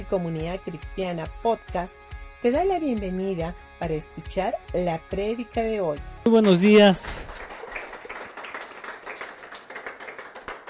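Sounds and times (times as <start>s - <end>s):
speech: 0.0s - 7.5s
audience applause: 6.3s - 10.6s.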